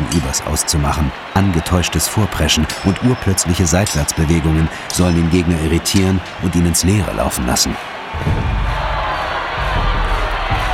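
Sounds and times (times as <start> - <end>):
crowd of spectators cheering and clapping: 0.0 - 10.7
speech: 0.1 - 8.8
heavy thumps: 8.2 - 10.7.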